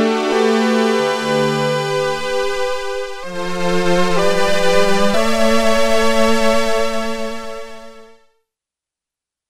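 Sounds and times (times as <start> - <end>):
slow strings on a Prophet-5 synthesizer factory patch: 0.1 - 8.1.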